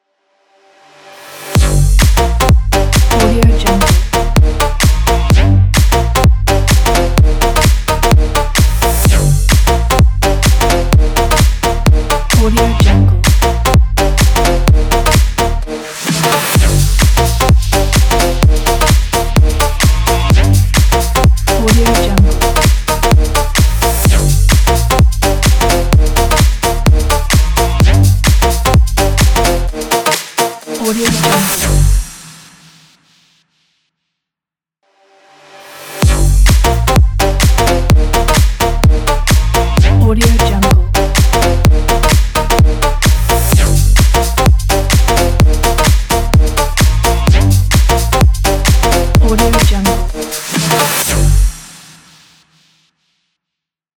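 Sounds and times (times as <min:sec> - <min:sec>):
future house music: 0:01.5 - 0:32.2, 0:36.0 - 0:51.8.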